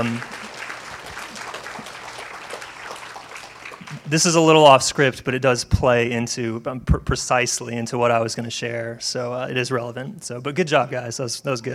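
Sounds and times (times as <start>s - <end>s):
speech: 0.0s - 0.4s, 4.1s - 11.7s
audience applause: 0.0s - 4.8s.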